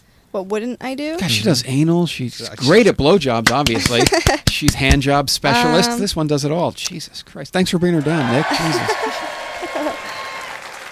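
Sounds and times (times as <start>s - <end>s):
speech: 0.3s - 10.0s
laughter: 3.7s - 4.4s, 8.1s - 10.3s
studio audience clapping: 7.8s - 10.9s.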